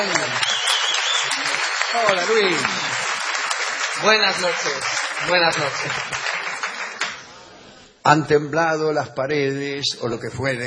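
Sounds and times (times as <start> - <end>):
audience ovation and applause: 0.0 - 7.3
speech: 1.4 - 3.0, 4.0 - 6.4, 8.0 - 10.6.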